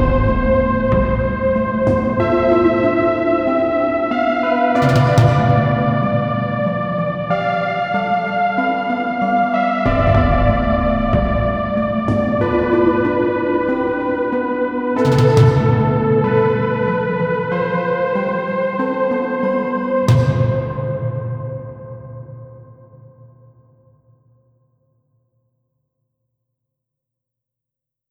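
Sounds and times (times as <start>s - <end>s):
dungeon synth practice piece: 0.0s - 22.4s.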